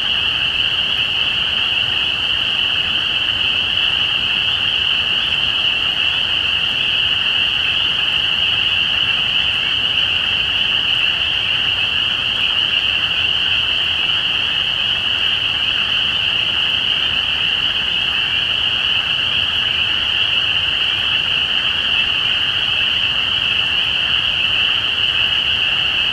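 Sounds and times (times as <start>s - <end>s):
spring peeper chorus: 0.0s - 26.1s.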